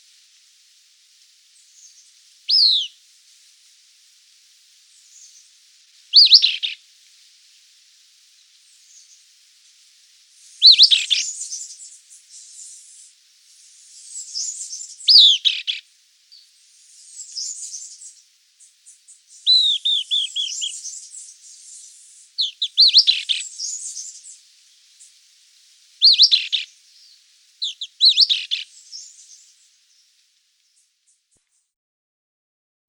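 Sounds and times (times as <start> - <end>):
Caribbean Elaenia singing in Guadeloupe: 1.8 - 3.0, 6.1 - 6.8, 10.6 - 13.1, 13.8 - 18.2, 18.9 - 24.4, 26.0 - 30.1.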